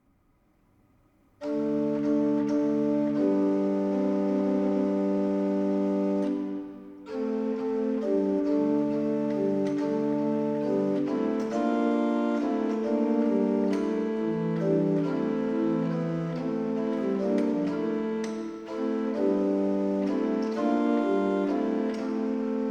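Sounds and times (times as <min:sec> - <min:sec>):
instrumental music: 0:01.4 - 0:22.7.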